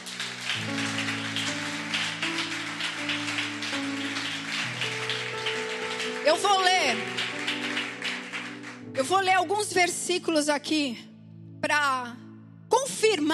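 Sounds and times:
audience applauding: 0.0s - 8.9s
sustained keyboard chords: 0.0s - 12.7s
speech: 6.3s - 7.2s, 9.0s - 11.1s, 12.8s - 13.3s.

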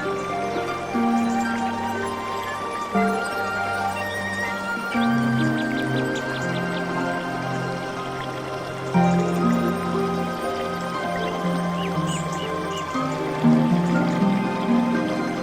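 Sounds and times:
calm zen music sustained tones: 0.0s - 15.4s
gentle low drone: 0.0s - 15.4s.

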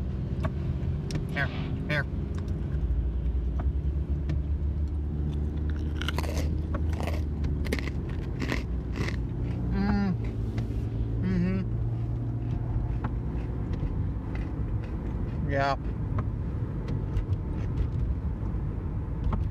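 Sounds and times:
steady low engine-like hum: 0.0s - 19.4s
speech: 1.4s - 2.2s
chewing: 5.2s - 9.7s, 12.4s - 15.4s
crunching snack crackers: 5.3s - 9.7s.

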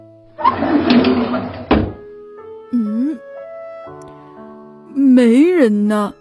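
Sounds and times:
door shutting: 0.4s - 2.1s
speech: 5.2s - 6.1s.

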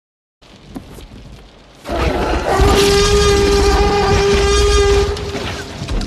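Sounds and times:
T-Rex roar movie sound effect: 1.9s - 6.0s.

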